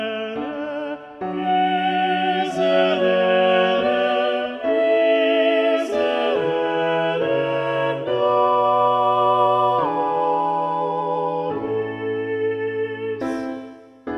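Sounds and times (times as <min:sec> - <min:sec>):
sacred mass music: 0:00.0 - 0:14.0.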